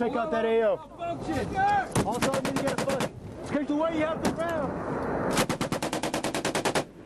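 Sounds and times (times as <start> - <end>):
speech: 0.0 - 5.5
machine gun fire raking a hillside: 2.0 - 3.1, 5.3 - 6.9.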